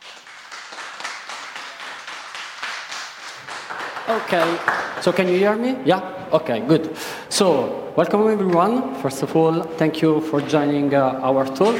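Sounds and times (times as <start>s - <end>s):
audience applause: 0.0s - 5.4s
speech: 4.1s - 11.7s.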